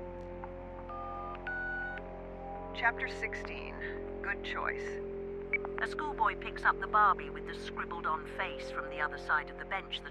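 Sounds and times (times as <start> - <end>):
low constant hum: 0.0 - 10.1
telephone keypad dialing tones: 1.0 - 2.0
speech: 2.8 - 5.1, 5.7 - 10.1.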